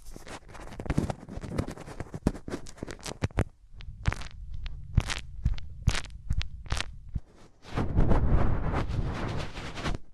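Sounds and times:
hands rubbing over ears: 0.0s - 3.3s, 4.1s - 10.0s
deep muffled rumble: 3.7s - 9.7s.

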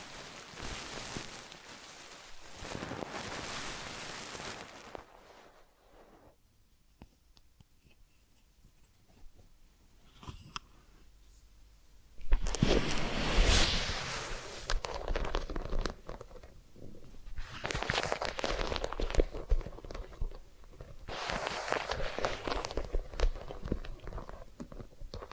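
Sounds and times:
massage and ear cleaning rustling: 0.0s - 6.4s, 12.3s - 25.3s.

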